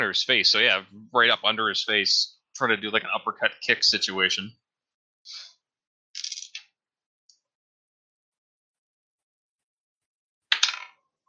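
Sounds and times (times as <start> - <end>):
speech: 0.0 - 4.6, 5.2 - 5.5
dice rolled for a tabletop game: 6.2 - 6.7, 10.5 - 11.0.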